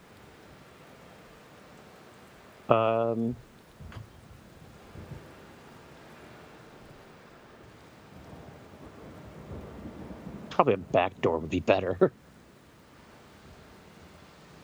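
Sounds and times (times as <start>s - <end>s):
pouring rain: 0.0s - 14.6s
laughter: 2.7s - 3.4s, 10.5s - 12.1s
speech: 2.7s - 3.5s, 10.6s - 12.2s
thunder: 8.2s - 10.5s.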